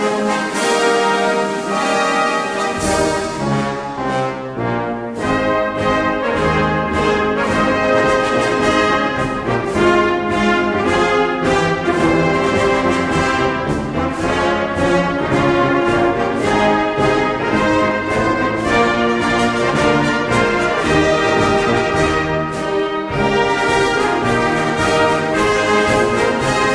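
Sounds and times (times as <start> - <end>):
instrumental music: 0.0 - 26.7.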